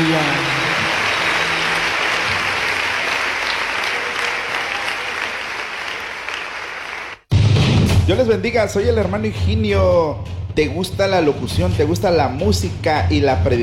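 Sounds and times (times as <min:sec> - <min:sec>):
audience applause: 0:00.0 - 0:07.3
speech: 0:08.1 - 0:13.6.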